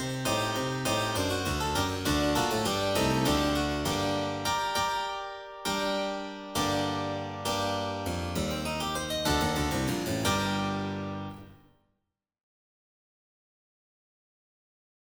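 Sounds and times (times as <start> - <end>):
solo piano: 0.0 - 11.5.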